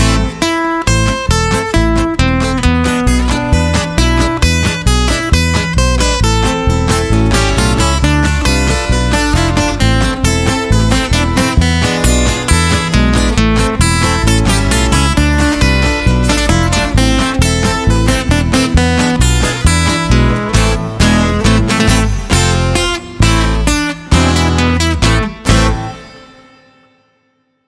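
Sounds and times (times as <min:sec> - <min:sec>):
guitar: 0:00.0 - 0:27.6.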